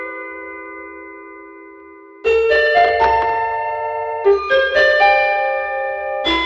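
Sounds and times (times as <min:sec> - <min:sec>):
dry toy piano: 0:02.3 - 0:06.4.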